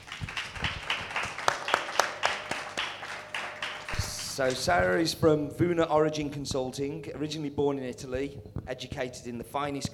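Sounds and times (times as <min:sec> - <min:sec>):
audience applause: 0:00.0 - 0:04.7
speech: 0:04.4 - 0:09.9.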